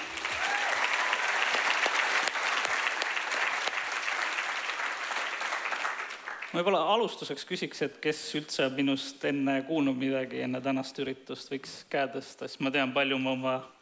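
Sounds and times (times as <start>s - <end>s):
large audience applause for event organizers: 0.0s - 6.6s
speech: 6.5s - 13.8s.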